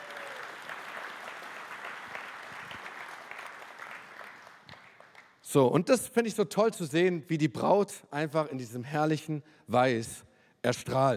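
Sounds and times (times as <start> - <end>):
audience applause: 0.0 - 5.3
speech: 5.5 - 11.1.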